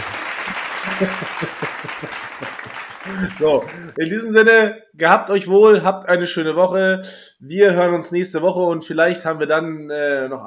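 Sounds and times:
clapping: 0:00.0 - 0:04.0
laughter: 0:00.0 - 0:04.1
speech: 0:01.0 - 0:02.5, 0:03.1 - 0:10.4.

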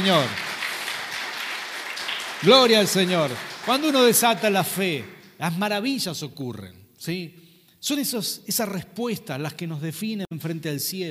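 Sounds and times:
speech: 0:00.0 - 0:00.4, 0:02.4 - 0:11.0
audience applause: 0:00.0 - 0:05.2.

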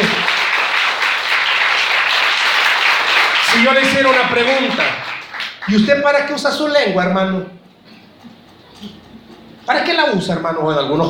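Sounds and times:
audience applauding: 0:00.0 - 0:06.2
speech: 0:03.7 - 0:05.0, 0:05.7 - 0:07.6, 0:09.7 - 0:11.0.

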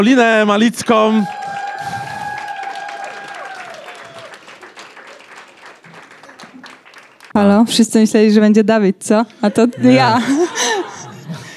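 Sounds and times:
speech: 0:00.0 - 0:01.4, 0:07.4 - 0:10.8
audience applause: 0:00.6 - 0:07.4
laughter: 0:09.3 - 0:11.5.

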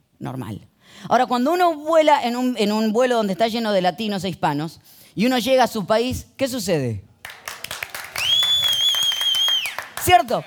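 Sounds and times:
speech: 0:00.2 - 0:07.1, 0:10.0 - 0:10.4
audience clapping: 0:07.2 - 0:10.4
loud steady whistle: 0:08.2 - 0:09.9.

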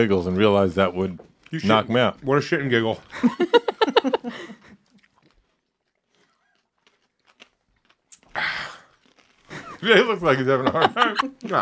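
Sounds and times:
speech: 0:00.0 - 0:04.6, 0:09.8 - 0:11.6
laughter: 0:03.1 - 0:04.8, 0:09.5 - 0:11.6
someone biting into and chewing a jalapeno pepper: 0:04.6 - 0:10.4.

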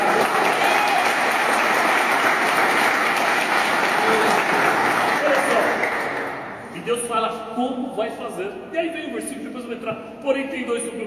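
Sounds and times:
audience applause: 0:00.0 - 0:06.5
speech: 0:06.9 - 0:11.0.

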